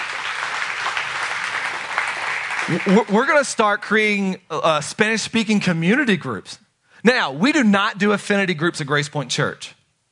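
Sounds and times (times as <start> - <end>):
audience clapping: 0.0 - 3.5
speech: 2.7 - 9.8.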